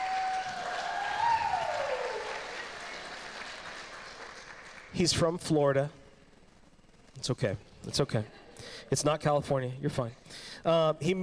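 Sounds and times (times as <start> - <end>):
audience clapping: 0.0 - 5.2
speech: 5.0 - 6.0, 7.2 - 11.2.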